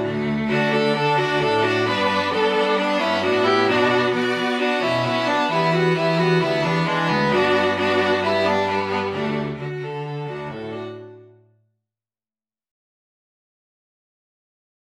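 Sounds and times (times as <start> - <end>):
string quintet playing: 0.0 - 11.4.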